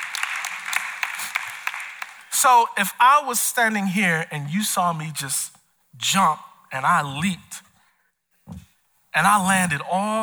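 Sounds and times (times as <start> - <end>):
audience clapping: 0.0 - 2.5
speech: 2.4 - 7.6, 9.2 - 10.2.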